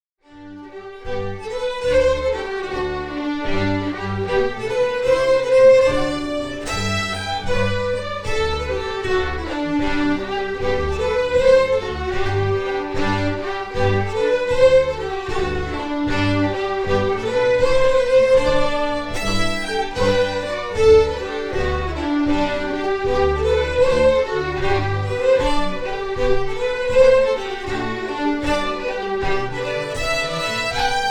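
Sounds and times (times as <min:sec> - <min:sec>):
Scottish fiddling quick step: 0:00.2 - 0:31.0.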